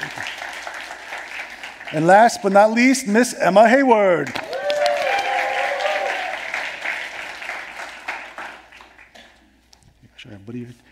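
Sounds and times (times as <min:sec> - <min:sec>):
audience applause: 0:00.0 - 0:02.5, 0:04.3 - 0:09.2
speech: 0:01.9 - 0:04.4, 0:10.6 - 0:10.8
voices cheering: 0:04.4 - 0:06.7.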